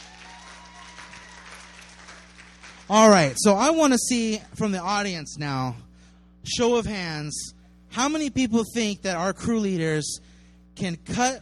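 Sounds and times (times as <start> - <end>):
audience applause for a volunteer at a live demonstration: 0.0 - 3.4
speech: 2.9 - 5.9, 6.5 - 11.3.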